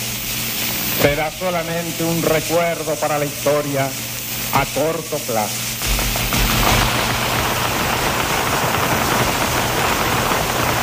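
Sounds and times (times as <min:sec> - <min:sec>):
speech: 0:01.0 - 0:05.7
sustained crowd applause: 0:05.8 - 0:10.8.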